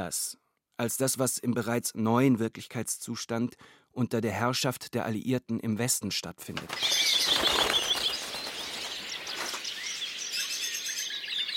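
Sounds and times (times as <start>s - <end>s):
speech: 0.0s - 7.2s
birds screaming in a zoo enclosure: 6.6s - 11.5s.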